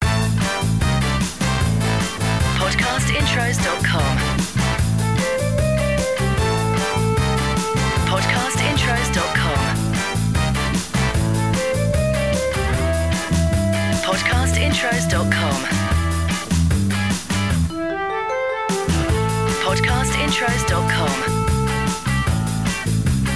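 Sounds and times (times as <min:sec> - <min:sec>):
lounge swing music: 0:00.0 - 0:23.3.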